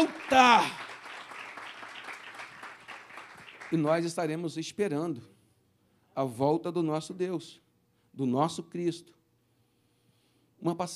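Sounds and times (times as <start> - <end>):
speech: 0.0 - 0.8, 3.7 - 5.3, 6.2 - 7.6, 8.2 - 9.2, 10.6 - 10.9
audience applause: 0.0 - 4.2.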